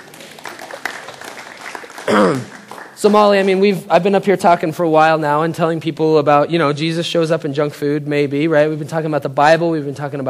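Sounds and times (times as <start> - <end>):
audience applause: 0.0 - 3.7
speech: 2.1 - 10.2.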